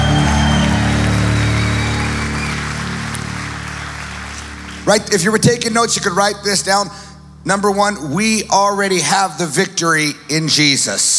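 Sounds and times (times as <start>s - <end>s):
audience clapping: 0.0s - 6.2s
speech: 4.9s - 11.1s.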